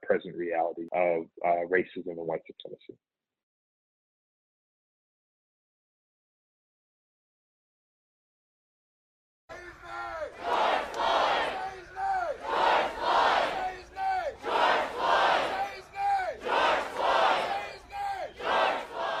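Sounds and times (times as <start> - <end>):
speech: 0.2 - 3.2
crowd chanting: 9.5 - 19.1.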